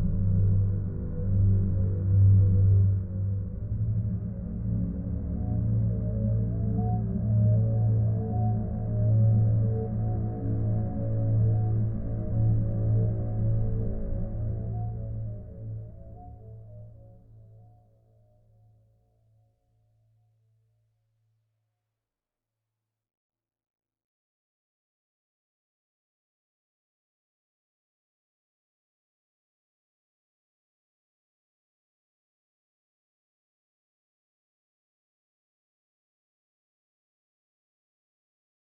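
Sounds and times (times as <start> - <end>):
ambience: 0.0 - 17.5.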